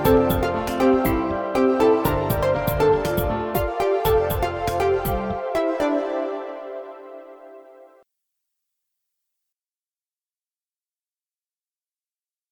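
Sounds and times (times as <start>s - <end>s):
ambient soundscape: 0.0s - 8.0s.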